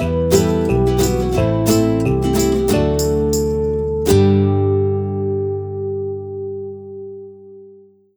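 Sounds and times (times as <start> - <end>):
happy upbeat ukulele: 0.0 - 5.4
fun upbeat guitar: 0.0 - 7.9.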